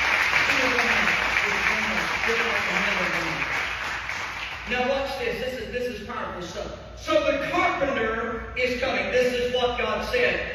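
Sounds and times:
audience hand clapping: 0.0s - 4.8s
speech: 4.7s - 10.5s.

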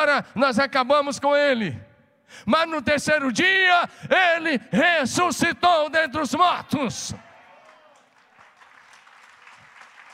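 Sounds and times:
speech: 0.0s - 7.2s
audience applause: 7.3s - 10.1s.

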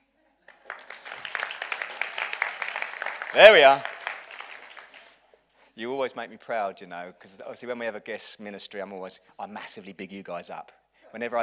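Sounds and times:
audience clapping: 0.5s - 5.2s
speech: 3.3s - 3.9s, 5.8s - 11.4s.

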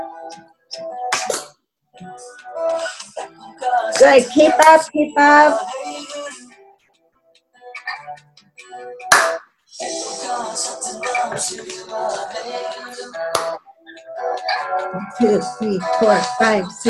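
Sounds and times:
busy music-like sound: 0.0s - 16.8s
speech: 0.3s - 0.8s, 4.0s - 5.8s, 14.9s - 16.8s
rhythmic hand clapping on the count: 1.1s - 1.5s, 9.0s - 9.5s, 13.3s - 13.6s.

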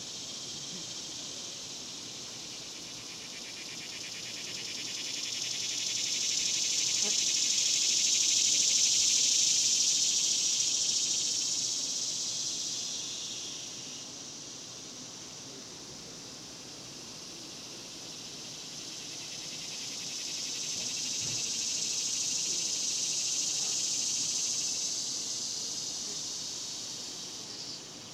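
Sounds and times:
cicadas buzzing: 0.0s - 28.1s.

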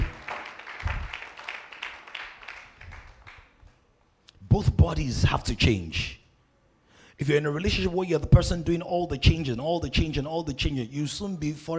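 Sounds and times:
rhythmic audience clapping: 0.0s - 4.0s
speech: 4.6s - 6.2s, 7.2s - 11.7s.

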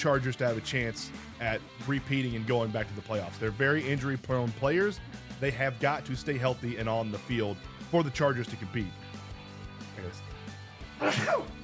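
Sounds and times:
speech: 0.0s - 9.1s, 10.0s - 10.3s, 11.0s - 11.6s
sneeze: 11.0s - 11.6s.

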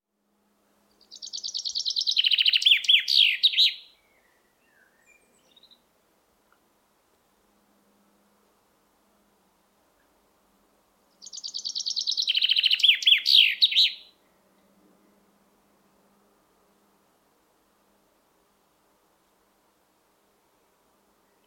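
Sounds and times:
common chaffinch song: 0.7s - 6.6s, 11.0s - 14.8s, 20.5s - 21.4s.

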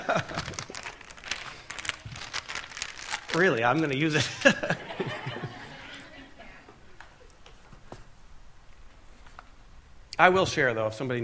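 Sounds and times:
laughter: 0.0s - 0.9s, 4.1s - 7.3s
something folded back up with a papery crinkling rustle: 0.0s - 4.1s
speech: 3.4s - 5.4s, 10.2s - 11.2s.

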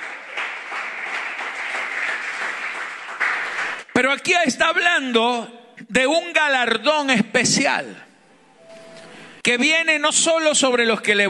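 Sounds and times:
audience applause: 0.0s - 3.9s
speech: 4.0s - 8.0s, 9.5s - 11.2s.

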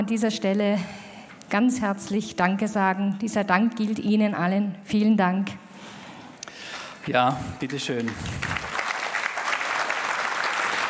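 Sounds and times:
speech: 0.0s - 6.0s, 7.1s - 8.6s
audience applause: 7.6s - 10.8s.

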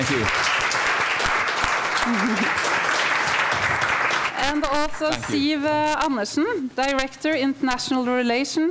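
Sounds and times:
speech: 0.0s - 0.5s, 2.0s - 2.7s, 4.4s - 8.7s
audience applause: 0.0s - 5.9s
laughter: 0.0s - 5.9s.

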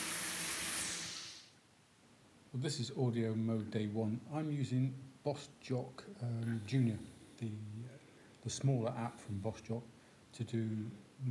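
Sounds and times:
running shower water: 0.0s - 1.5s
speech: 2.5s - 11.2s.

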